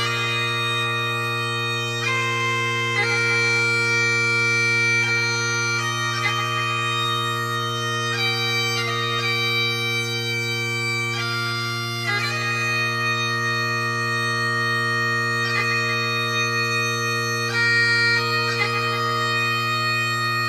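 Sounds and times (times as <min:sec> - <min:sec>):
bagpipes playing a hymn: 0:00.0 - 0:20.4.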